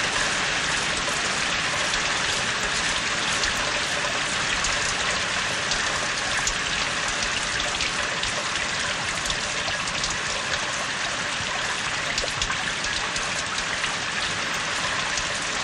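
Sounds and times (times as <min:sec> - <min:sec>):
heavy rain pouring: 0:00.0 - 0:15.6.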